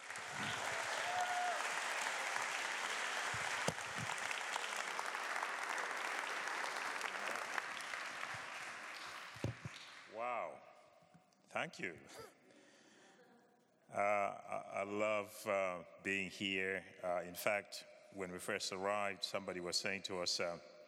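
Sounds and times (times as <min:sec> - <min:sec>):
audience applause at a church gathering welcoming a guest speaker: 0:00.0 - 0:10.2
speech: 0:11.6 - 0:12.4, 0:13.9 - 0:20.7.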